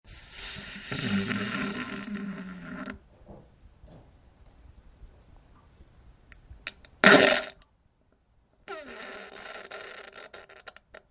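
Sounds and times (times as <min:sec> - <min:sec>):
diarrhea farting: 0:00.3 - 0:03.0, 0:07.0 - 0:07.5, 0:08.7 - 0:10.6.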